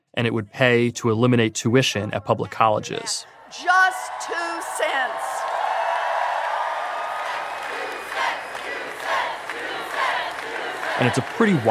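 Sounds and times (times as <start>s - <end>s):
speech: 0.2s - 5.4s, 11.0s - 11.7s
crowd chanting: 2.3s - 11.7s.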